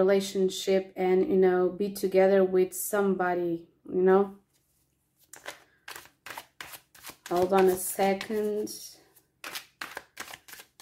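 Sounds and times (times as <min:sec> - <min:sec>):
speech: 0:00.0 - 0:04.4, 0:07.3 - 0:09.0
tarot cards being shuffled and drawn: 0:04.6 - 0:10.8.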